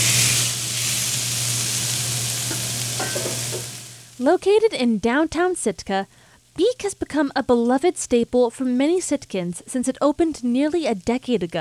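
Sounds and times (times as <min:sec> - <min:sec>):
low hum: 0:00.0 - 0:04.2
fish sizzling on a flat top grill: 0:00.0 - 0:04.4
short scrapes and clinks: 0:02.5 - 0:03.8
speech: 0:04.2 - 0:11.5.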